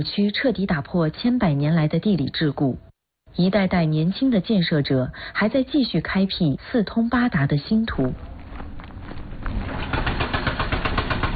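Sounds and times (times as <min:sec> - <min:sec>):
speech: 0:00.0 - 0:08.3
heavy construction machinery working at highway construction site: 0:08.2 - 0:11.3.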